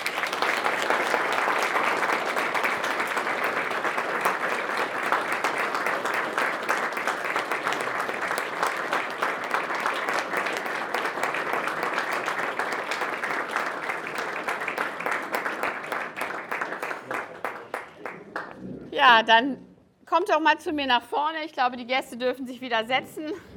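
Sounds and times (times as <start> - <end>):
strong applause: 0.0 - 18.9
speech: 19.0 - 23.3.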